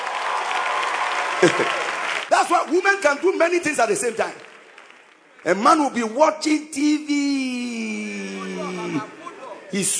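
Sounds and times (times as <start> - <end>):
audience applause: 0.0 - 5.8
speech: 1.4 - 4.4, 5.4 - 9.1, 9.7 - 9.9.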